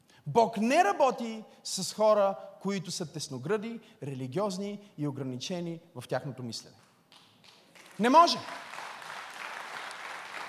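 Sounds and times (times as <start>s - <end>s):
speech: 0.2s - 6.8s, 8.0s - 8.7s
audience applause: 7.4s - 10.4s.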